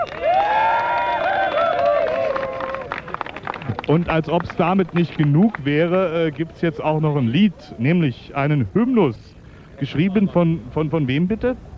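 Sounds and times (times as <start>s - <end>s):
audience applause and cheering: 0.0s - 5.7s
speech: 3.9s - 11.7s.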